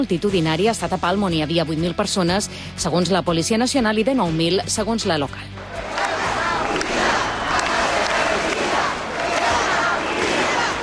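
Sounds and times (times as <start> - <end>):
speech: 0.0 - 5.7
rally crowd shouting and chanting: 5.6 - 10.8.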